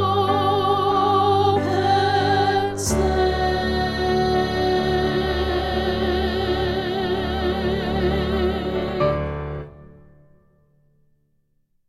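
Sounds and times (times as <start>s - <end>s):
isolated alto voice singing a practice track: 0.0s - 9.8s.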